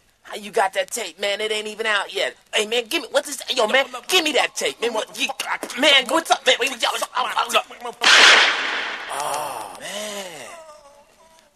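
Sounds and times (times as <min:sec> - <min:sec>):
speech: 0:00.4 - 0:10.0
gunshot: 0:08.0 - 0:09.6.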